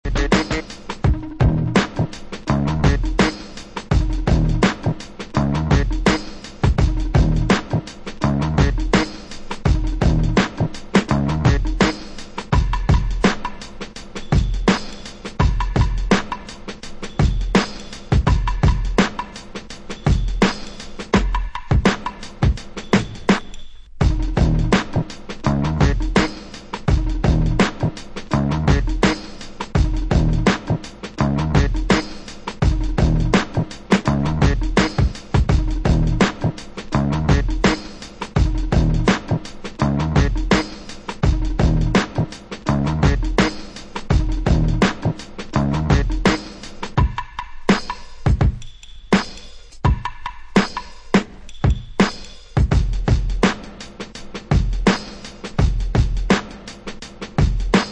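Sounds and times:
instrumental music: 0.0s - 57.9s.

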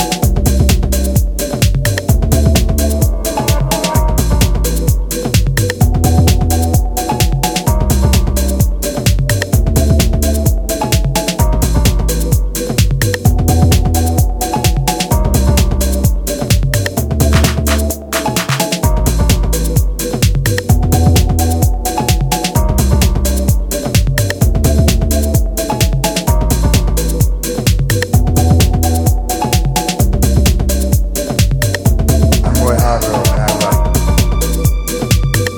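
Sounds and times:
808 drum machine jazz beat: 0.0s - 35.5s.

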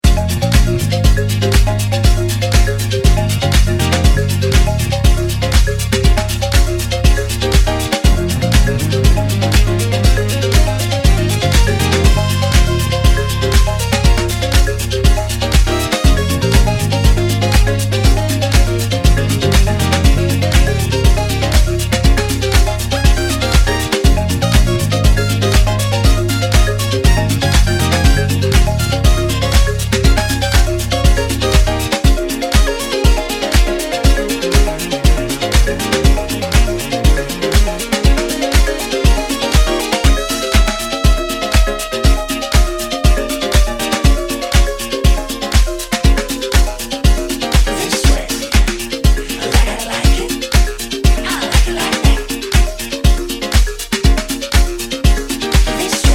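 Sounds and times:
marimba disco music: 0.0s - 56.1s.

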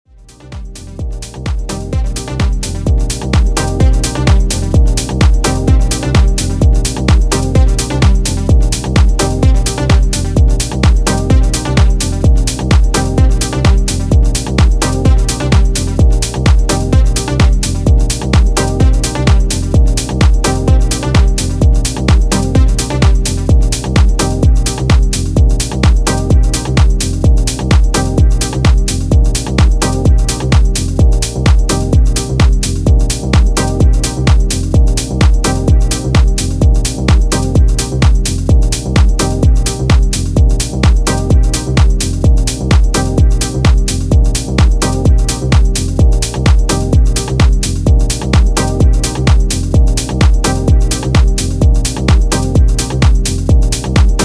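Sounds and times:
rhythmic instrumental music: 0.1s - 54.2s.

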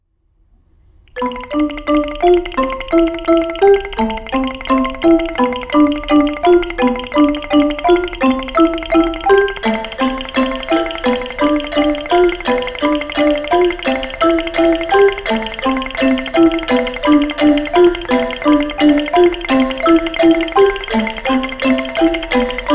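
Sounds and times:
handheld wood percussion: 1.1s - 22.7s
two bowed marimbaphones: 1.1s - 22.7s
two vibraphones: 1.1s - 22.7s
wooden xylophone: 1.1s - 22.7s
two bells: 1.2s - 22.7s.

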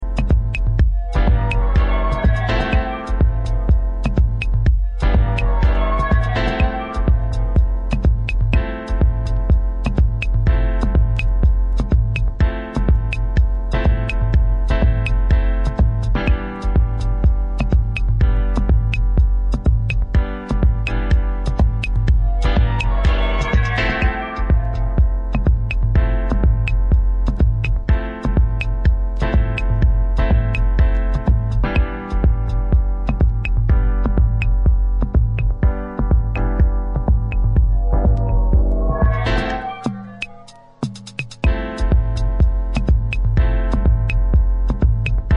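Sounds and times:
piano: 0.0s - 45.3s.

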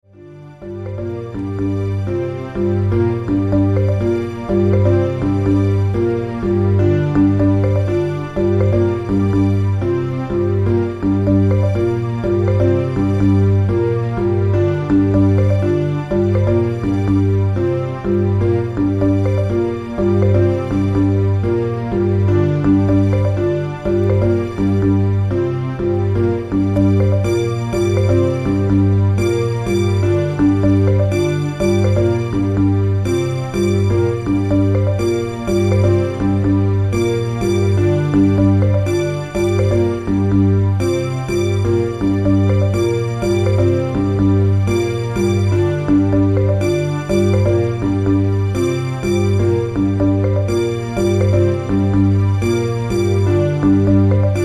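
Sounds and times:
string instruments mix: 0.0s - 54.4s.

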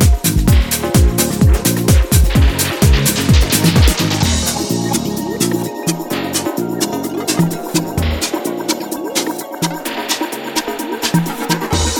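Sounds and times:
reversed cowbell for house music: 0.5s - 11.9s.

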